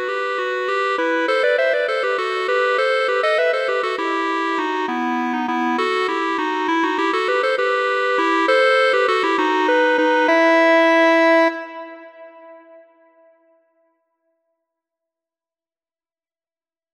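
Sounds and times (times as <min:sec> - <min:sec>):
clarinet duet: 0:00.0 - 0:13.5.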